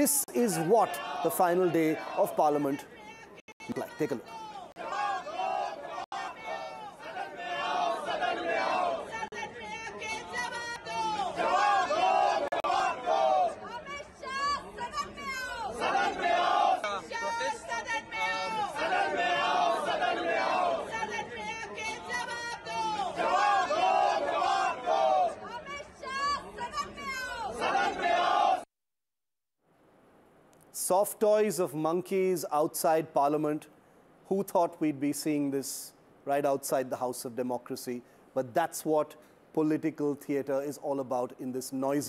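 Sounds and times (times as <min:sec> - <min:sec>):
protesters shouting slogans: 0:00.0 - 0:02.4, 0:04.1 - 0:28.7
speech: 0:00.0 - 0:03.0, 0:03.7 - 0:04.4, 0:31.2 - 0:42.0.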